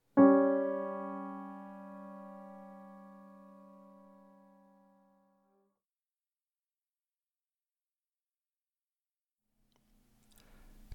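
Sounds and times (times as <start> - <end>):
simultaneous tritone interval: 0.2 - 4.9.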